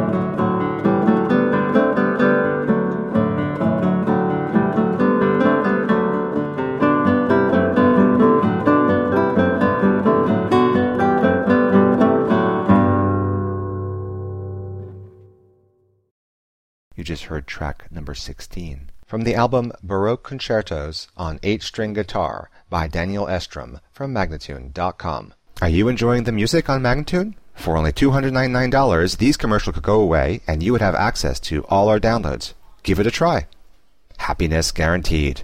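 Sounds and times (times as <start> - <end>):
eight-string guitar playing a concerto allegro: 0.0 - 15.8
person speaking: 16.9 - 35.4.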